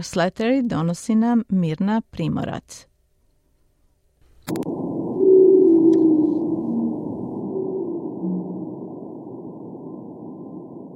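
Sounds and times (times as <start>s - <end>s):
speech: 0.0s - 2.9s, 4.5s - 4.8s
pygmy blue whale song recorded by nuclear-bomb detectors on the Indian Ocean floor: 5.1s - 9.6s.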